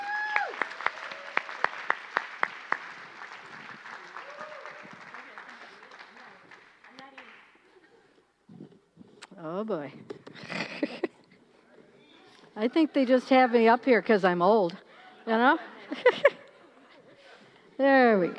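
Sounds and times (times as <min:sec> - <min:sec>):
audience applause welcoming a speaker: 0:00.0 - 0:07.5
speech: 0:09.4 - 0:10.6, 0:12.6 - 0:16.3, 0:17.8 - 0:18.3
laughter: 0:10.4 - 0:11.3, 0:14.9 - 0:17.6.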